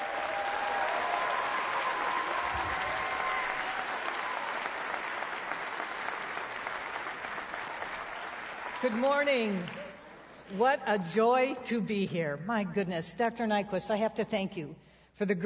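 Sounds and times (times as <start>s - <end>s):
audience applause welcoming a speaker: 0.0s - 10.5s
speech: 8.8s - 9.9s, 10.5s - 15.4s.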